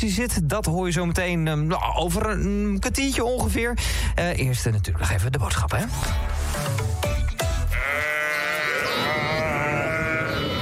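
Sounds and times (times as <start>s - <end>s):
speech: 0.0s - 7.0s
sheep bleating: 7.7s - 10.5s.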